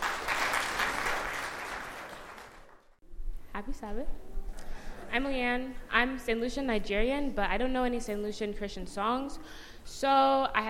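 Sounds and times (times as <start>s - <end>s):
audience applause: 0.0s - 3.0s
speech: 3.6s - 4.3s, 5.1s - 10.6s.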